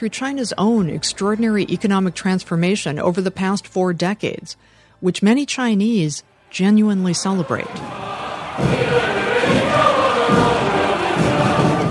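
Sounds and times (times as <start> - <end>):
speech: 0.0 - 9.0
low rhythmic thumps: 6.8 - 11.8
large crowd cheering at a military parade: 7.3 - 11.8.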